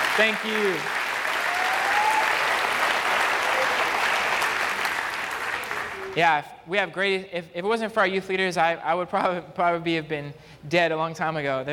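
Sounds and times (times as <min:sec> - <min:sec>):
audience applause: 0:00.0 - 0:06.2
speech: 0:00.2 - 0:01.0, 0:06.2 - 0:11.7.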